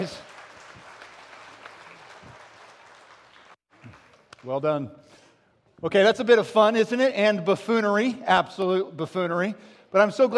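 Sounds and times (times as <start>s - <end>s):
crowd applauding: 0.0s - 4.5s
speech: 4.4s - 5.2s, 5.8s - 10.3s.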